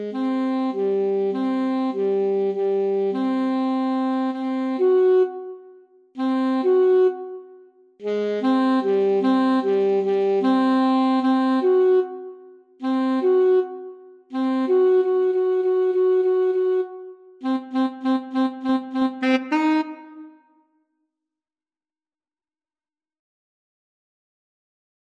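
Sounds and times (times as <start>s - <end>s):
trumpet and saxophone duet: 0.0s - 5.6s, 6.2s - 20.4s.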